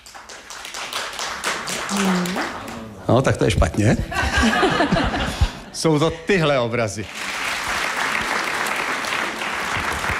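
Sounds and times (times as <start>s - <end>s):
audience clapping: 0.0s - 3.5s, 6.9s - 10.1s
speech: 1.9s - 7.2s
laughter: 3.9s - 6.1s.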